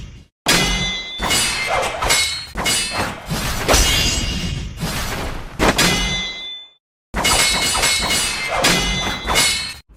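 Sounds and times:
swords clashing: 0:00.5 - 0:04.6, 0:05.6 - 0:09.9.

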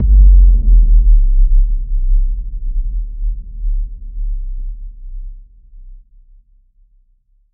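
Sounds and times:
cinematic boom: 0:00.0 - 0:04.2.

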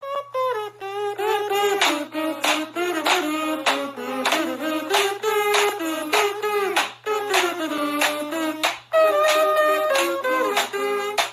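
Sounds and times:
hot dog kazoo: 0:00.0 - 0:11.3.

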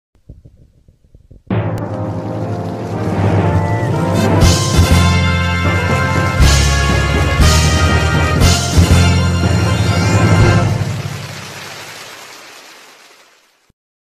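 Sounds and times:
videoke score jingle: 0:03.0 - 0:11.2.

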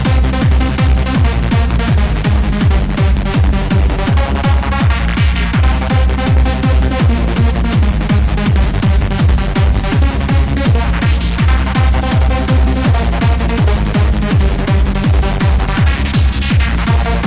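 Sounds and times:
hardcore trance music: 0:00.0 - 0:17.2.

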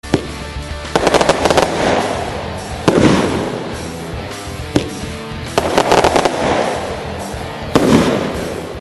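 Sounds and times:
firework rocket: 0:00.9 - 0:03.8, 0:05.6 - 0:07.0, 0:07.7 - 0:08.7.

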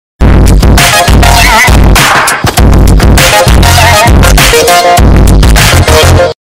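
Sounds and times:
distorted earrape funky dance music: 0:00.2 - 0:06.4.

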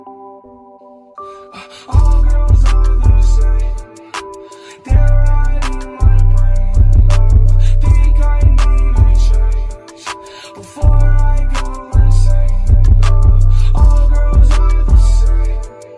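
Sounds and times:
boosted bass: 0:02.0 - 0:03.8, 0:04.9 - 0:09.8, 0:10.8 - 0:15.7.

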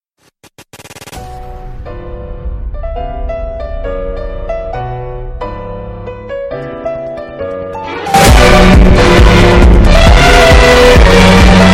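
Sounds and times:
distorted loud audio: 0:00.2 - 0:05.5, 0:07.9 - 0:11.7.

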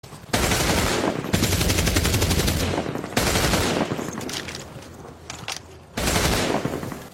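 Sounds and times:
machine gun firing: 0:00.3 - 0:04.2, 0:06.0 - 0:07.1.

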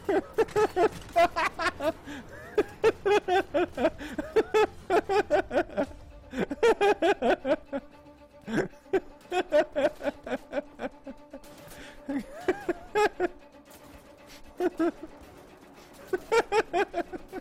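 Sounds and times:
person giggling: 0:00.0 - 0:07.8, 0:08.5 - 0:11.3, 0:12.0 - 0:13.4, 0:14.5 - 0:15.1, 0:16.1 - 0:17.3.

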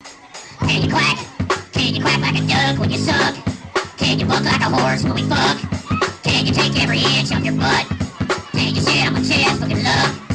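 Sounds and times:
fast goal song: 0:00.2 - 0:10.3.

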